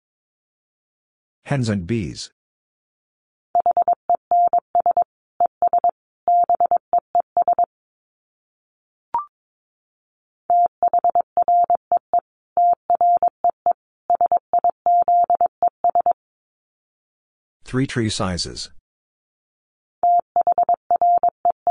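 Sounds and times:
speech: 0:01.5 - 0:02.4, 0:17.7 - 0:18.8
Morse code beeps sent at 22 words per minute: 0:03.6 - 0:06.8, 0:07.4 - 0:07.7, 0:10.5 - 0:12.0, 0:12.6 - 0:13.3, 0:14.1 - 0:16.2, 0:20.1 - 0:21.6.

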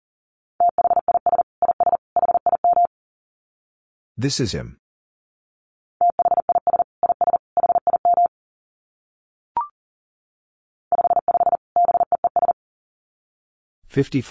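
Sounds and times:
fast Morse code tones at 40 words per minute: 0:00.6 - 0:02.9, 0:06.0 - 0:08.3, 0:10.9 - 0:12.6
speech: 0:04.2 - 0:04.8, 0:14.0 - 0:14.2.

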